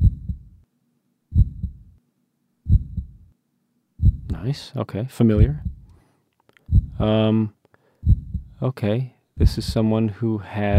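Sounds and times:
human heartbeat: 0.0 - 0.6, 1.3 - 1.9, 2.7 - 3.3, 4.0 - 4.4, 5.4 - 5.9, 6.7 - 7.1, 8.0 - 8.6, 9.4 - 9.8
speech: 4.4 - 5.7, 7.0 - 7.6, 8.6 - 10.7.

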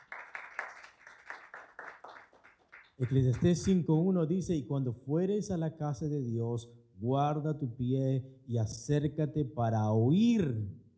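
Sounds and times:
church congregation clapping hands in praise: 0.0 - 3.8
speech: 3.0 - 10.8.

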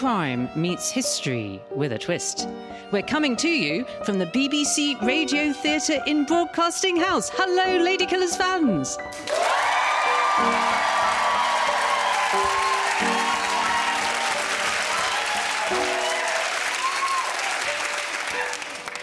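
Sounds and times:
speech: 0.0 - 9.6, 10.4 - 11.2
audience applause and cheering: 9.1 - 19.0.

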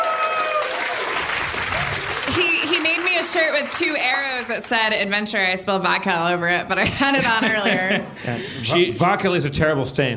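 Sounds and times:
crowd applause: 0.0 - 5.2
laughter: 2.2 - 3.3, 6.8 - 8.9
speech: 3.2 - 10.1.

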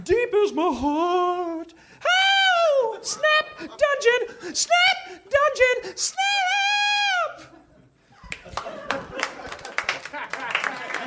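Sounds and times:
speech: 0.0 - 1.8, 3.0 - 6.7
laughter: 2.9 - 4.4, 7.3 - 11.0
audience clapping wearily: 8.3 - 11.0.

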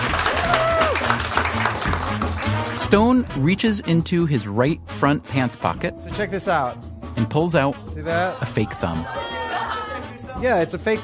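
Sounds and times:
magic show audience applauding a volunteer: 0.0 - 2.8
speech: 2.8 - 9.4, 10.4 - 11.0.

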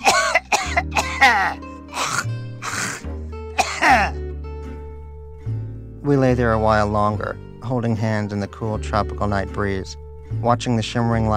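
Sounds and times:
old man clearing his throat: 0.0 - 4.2
old man's phlegmy coughing: 0.0 - 4.2
speech: 6.1 - 11.3.

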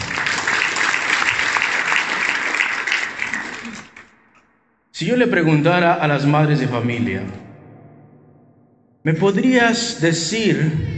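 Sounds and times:
audience clapping: 0.0 - 4.2
speech: 5.0 - 7.4, 9.0 - 10.9.

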